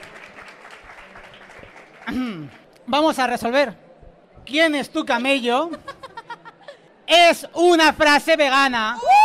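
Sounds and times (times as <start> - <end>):
audience clapping at a live vegan comedy event in Madrid: 0.0 - 2.8
speech: 2.1 - 3.8, 4.5 - 5.9, 7.1 - 9.1.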